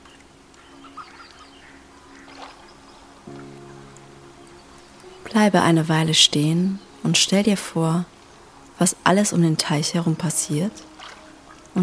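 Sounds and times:
ducks and other birds calling around a small duck pond: 0:00.0 - 0:07.1, 0:10.0 - 0:11.8
speech: 0:05.3 - 0:08.2, 0:08.8 - 0:10.9.

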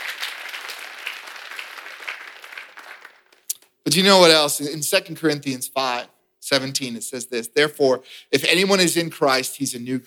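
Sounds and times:
audience clapping hands: 0:00.0 - 0:03.5
speech: 0:03.9 - 0:10.0.

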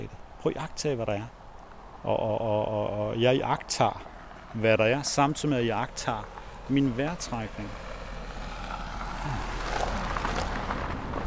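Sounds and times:
speech: 0:00.4 - 0:01.4, 0:02.0 - 0:07.9, 0:09.2 - 0:09.8
car driving past: 0:04.0 - 0:11.2.

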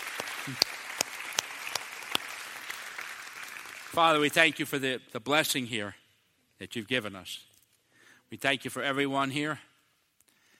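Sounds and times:
audience applauding: 0:00.0 - 0:04.3
speech: 0:00.4 - 0:00.7, 0:04.0 - 0:06.0, 0:06.6 - 0:07.5, 0:08.3 - 0:09.7.

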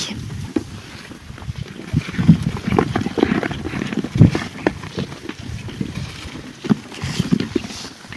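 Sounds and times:
animals crunching wheat, oat and pea grain: 0:00.0 - 0:08.1.

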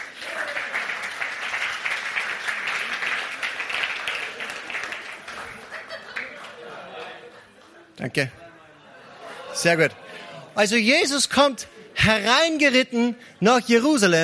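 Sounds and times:
audience applause: 0:00.0 - 0:07.8
laughter: 0:04.0 - 0:12.3
speech: 0:08.0 - 0:08.4, 0:09.6 - 0:10.0, 0:10.6 - 0:14.2.

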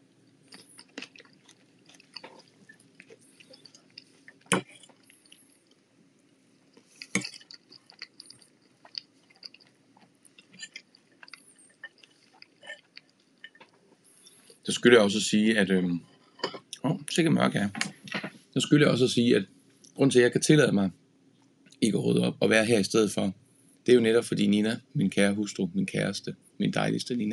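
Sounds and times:
person chewing food while eating: 0:00.0 - 0:14.6
speech: 0:14.7 - 0:16.1, 0:17.2 - 0:17.9, 0:18.6 - 0:21.0, 0:21.8 - 0:27.3.

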